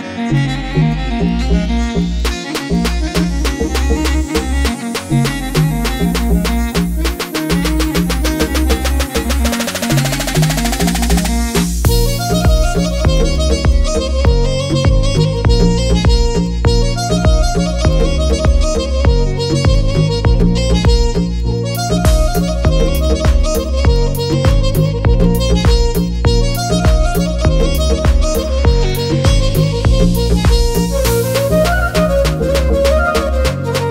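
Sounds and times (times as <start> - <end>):
Armenian-style beats: 0.4 - 33.8.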